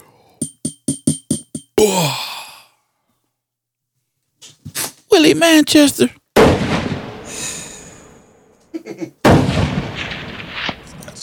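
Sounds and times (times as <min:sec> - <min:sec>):
speech: 0:01.8 - 0:02.3, 0:05.2 - 0:06.2
gunshot during a tabletop role-playing game: 0:06.4 - 0:08.0, 0:09.2 - 0:11.2.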